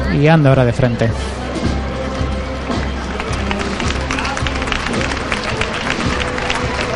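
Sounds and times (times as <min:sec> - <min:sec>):
speech: 0:00.2 - 0:01.4
crowd applause along procession route: 0:01.9 - 0:06.9.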